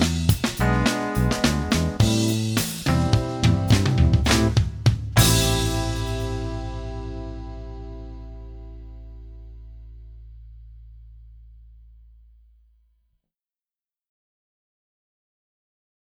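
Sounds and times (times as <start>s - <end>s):
backing track without guitar: 0.0s - 12.5s.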